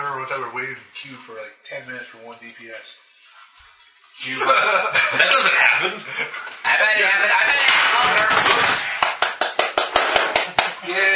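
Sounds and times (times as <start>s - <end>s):
speech: 0.3s - 3.1s, 4.2s - 8.9s, 10.9s - 11.1s
applause: 9.0s - 10.8s.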